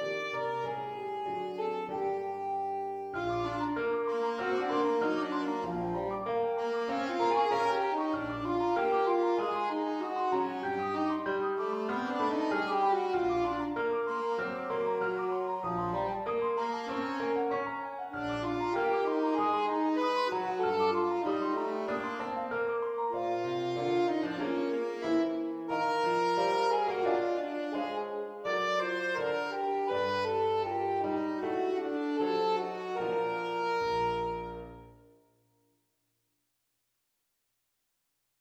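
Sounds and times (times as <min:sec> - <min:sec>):
sporadic saxophone: 0:00.0 - 0:35.0.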